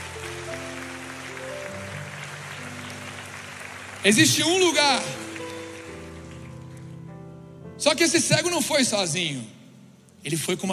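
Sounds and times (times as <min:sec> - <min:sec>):
audience applause: 0:00.0 - 0:07.0
speech: 0:04.0 - 0:05.2, 0:07.8 - 0:09.6, 0:10.2 - 0:10.7.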